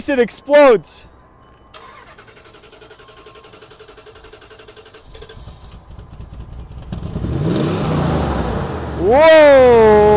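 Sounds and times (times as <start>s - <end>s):
speech: 0.0s - 1.1s, 9.0s - 10.1s
engine starting and revving after repair: 1.8s - 9.0s.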